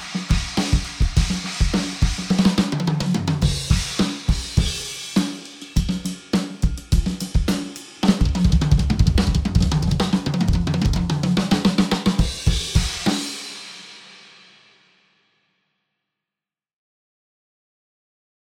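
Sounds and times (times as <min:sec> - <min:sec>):
complete drum kit: 0:00.0 - 0:14.4.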